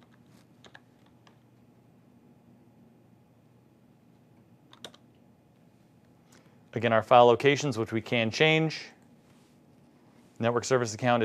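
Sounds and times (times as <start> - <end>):
keystrokes on a computer keyboard: 0.0 - 1.4, 4.7 - 5.1
steady low hiss: 0.0 - 11.2
speech: 6.8 - 9.0, 10.4 - 11.2.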